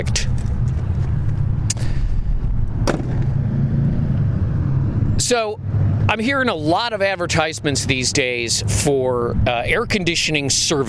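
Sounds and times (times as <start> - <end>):
speech: 0.0 - 0.4, 5.2 - 10.8
roar of passing motorcycles: 0.6 - 6.7.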